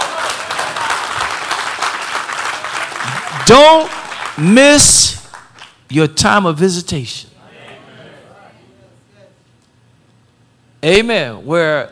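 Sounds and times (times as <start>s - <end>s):
audience clapping hands: 0.0s - 5.8s
speech: 3.5s - 5.2s, 5.9s - 7.3s, 10.8s - 11.9s.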